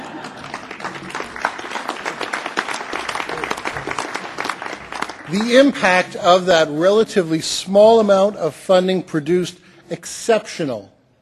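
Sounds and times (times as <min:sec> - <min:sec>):
audience applause: 0:00.0 - 0:06.1
speech: 0:05.3 - 0:11.1.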